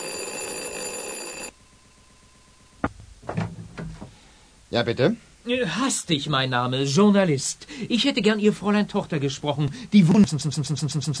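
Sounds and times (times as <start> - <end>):
doorbell ringing insistently in one long buzzing peal: 0.0 - 1.6
sharp knocks or clatters: 2.8 - 4.2
speech: 4.7 - 11.1.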